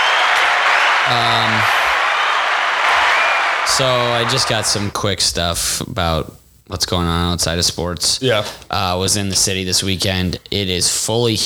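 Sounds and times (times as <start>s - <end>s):
audience applause: 0.0s - 5.0s
speech: 1.1s - 1.8s, 3.7s - 11.4s.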